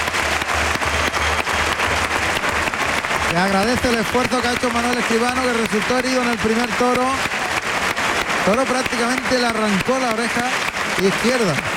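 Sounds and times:
bullring crowd ovation: 0.0 - 11.7
speech: 3.4 - 7.3, 8.4 - 11.7.

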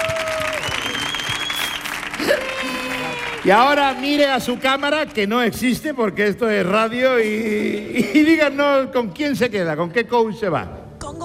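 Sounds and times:
loud applause: 0.0 - 5.7
speech: 3.4 - 11.2.

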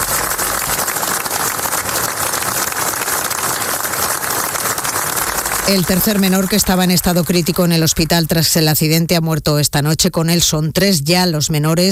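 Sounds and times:
long applause from a large crowd at a memorial ceremony: 0.0 - 8.5
speech: 5.7 - 11.9.

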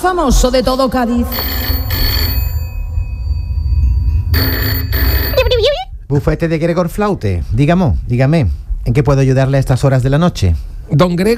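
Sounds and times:
speech: 0.0 - 1.8, 6.1 - 11.3
telephone ringing: 1.2 - 5.9.

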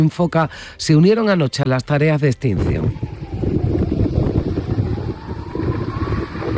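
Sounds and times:
speech: 0.0 - 3.2
faint rising tonal whine: 2.5 - 6.5
strong wind blowing in Andalusia: 2.5 - 6.5.

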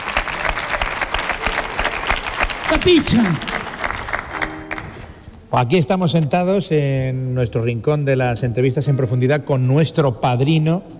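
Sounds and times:
audience applause: 0.0 - 5.2
speech: 2.7 - 3.6, 5.5 - 10.9.

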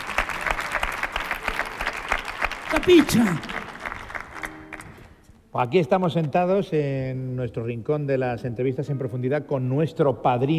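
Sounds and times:
audience applause: 0.0 - 5.1
speech: 2.7 - 3.5, 5.5 - 10.5.

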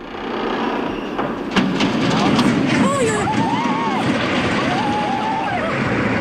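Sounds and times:
steel beams screeching: 0.0 - 6.1
sharp crack: 0.1 - 6.1
bridge crashing down into a river: 1.3 - 6.1.

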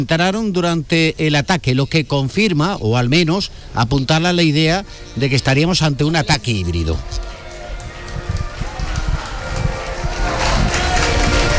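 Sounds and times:
speech: 0.0 - 7.3
crowd applauding in a town square: 6.3 - 11.5.

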